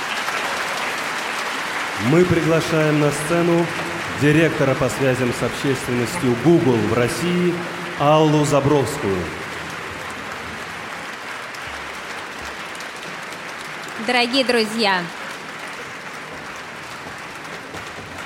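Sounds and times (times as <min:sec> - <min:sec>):
audience applause: 0:00.0 - 0:18.2
speech: 0:02.0 - 0:09.4, 0:14.1 - 0:15.2.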